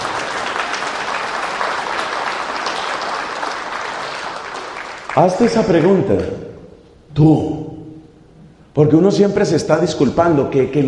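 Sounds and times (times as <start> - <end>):
audience applause: 0.0 - 6.0
speech: 5.2 - 6.5, 7.1 - 7.6, 8.8 - 10.8.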